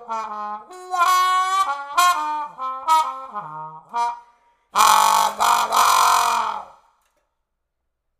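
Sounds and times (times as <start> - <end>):
trombone: 0.0 - 4.2, 4.8 - 6.8.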